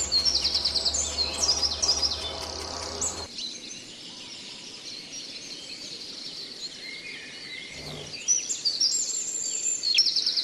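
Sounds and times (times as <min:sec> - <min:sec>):
bird song for training pet birds: 0:00.0 - 0:10.4.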